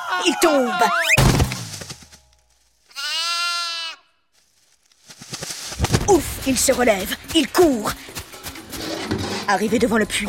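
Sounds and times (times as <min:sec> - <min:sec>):
speech: 0:00.2 - 0:01.4, 0:06.1 - 0:08.1, 0:09.5 - 0:10.2
sheep bleating: 0:02.9 - 0:04.2.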